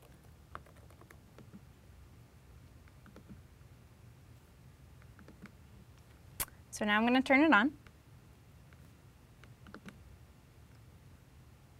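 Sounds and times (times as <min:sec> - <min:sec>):
typing on a computer keyboard: 0:00.0 - 0:01.6, 0:02.8 - 0:03.4, 0:05.0 - 0:05.6, 0:09.4 - 0:10.0
low steady hum: 0:00.0 - 0:11.7
speech: 0:06.8 - 0:07.8.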